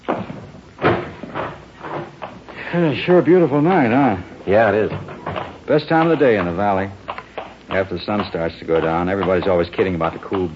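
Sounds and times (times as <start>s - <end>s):
door being opened and shut: 0.1s - 2.4s, 4.8s - 5.6s
speech: 2.7s - 5.1s, 5.7s - 7.0s, 7.7s - 10.5s.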